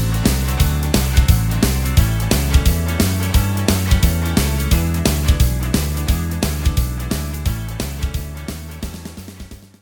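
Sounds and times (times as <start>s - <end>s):
guitar backing track without lead guitar: 0.0s - 9.8s.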